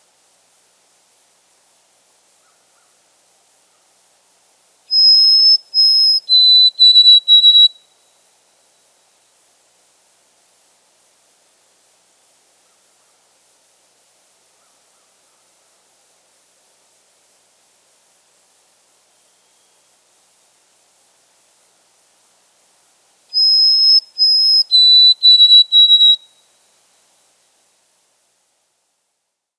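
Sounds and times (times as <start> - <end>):
white-throated sparrow singing: 4.9 - 7.7, 23.4 - 26.2.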